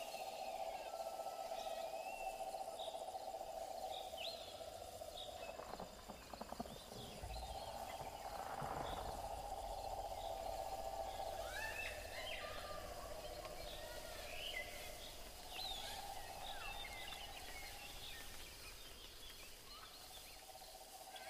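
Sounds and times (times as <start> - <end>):
steady high insect drone in jungle: 0.0 - 21.2
bird chirps and calls: 1.8 - 20.8
low rumble: 5.2 - 14.3
soft knocks and creaks: 5.3 - 11.2.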